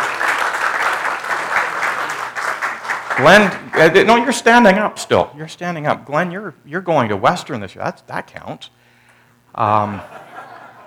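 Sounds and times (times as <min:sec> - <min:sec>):
audience clapping: 0:00.0 - 0:04.4
speech: 0:03.2 - 0:08.8, 0:09.6 - 0:10.2
laughter: 0:09.8 - 0:10.8.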